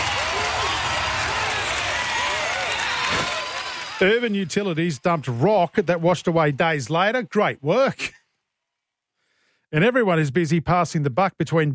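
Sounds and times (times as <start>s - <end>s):
applause: 0.0s - 7.6s
speech: 4.0s - 8.2s, 9.7s - 11.7s.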